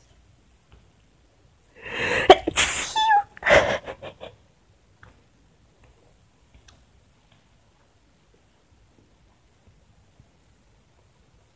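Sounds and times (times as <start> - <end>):
person sneezing: 1.9 - 4.3.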